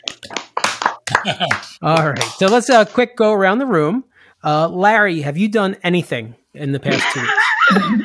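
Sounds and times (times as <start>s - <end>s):
round of applause: 0.6s - 2.6s
laughter: 1.1s - 1.8s, 6.9s - 8.0s
speech: 1.2s - 8.0s.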